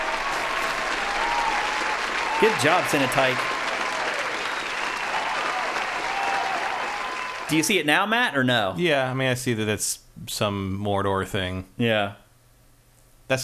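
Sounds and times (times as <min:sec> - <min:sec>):
steady dense applause: 0:00.0 - 0:07.8
speech: 0:02.4 - 0:03.5, 0:07.5 - 0:12.2.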